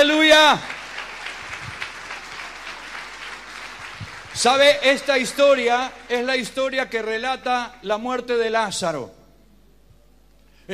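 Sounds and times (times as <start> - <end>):
speech: 0.0 - 0.8, 4.4 - 9.2
audience applauding: 0.0 - 6.5.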